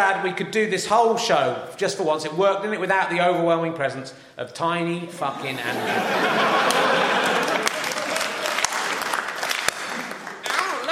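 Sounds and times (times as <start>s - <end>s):
speech: 0.0s - 7.5s
laughter: 5.3s - 9.2s
slow hand clap: 6.5s - 10.9s.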